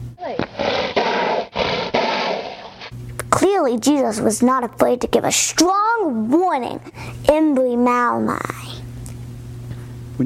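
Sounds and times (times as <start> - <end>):
horse snorting angrily: 0.4 - 2.9
speech: 3.6 - 8.8.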